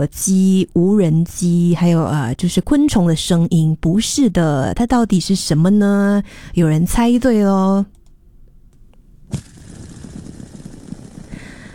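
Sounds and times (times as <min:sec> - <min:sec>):
speech: 0:00.0 - 0:08.0, 0:09.3 - 0:09.5
fidget spinner whirring: 0:09.3 - 0:11.7.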